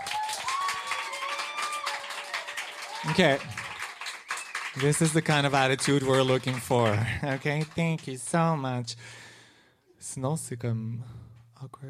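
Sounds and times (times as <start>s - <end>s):
audience applauding at a live show: 0.0s - 8.5s
speech: 3.0s - 3.6s, 4.8s - 9.2s, 10.1s - 11.8s.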